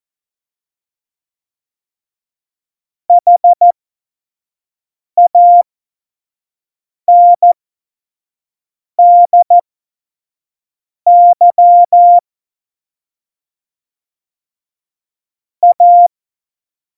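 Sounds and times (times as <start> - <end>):
morse code beeps: 3.1 - 3.7, 5.2 - 5.6, 7.1 - 7.6, 9.0 - 9.6, 11.1 - 12.2, 15.6 - 16.1.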